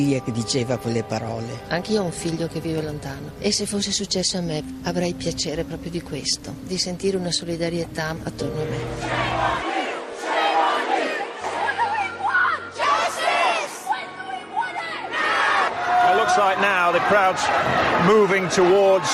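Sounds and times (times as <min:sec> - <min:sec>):
speech: 0:00.0 - 0:09.7, 0:16.4 - 0:19.1
crowd entering Kensington town hall: 0:08.4 - 0:19.1.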